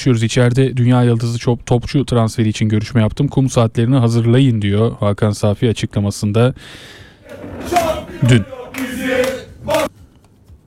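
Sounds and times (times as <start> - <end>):
speech: 0.0 - 9.9
football fans chanting: 7.2 - 9.9.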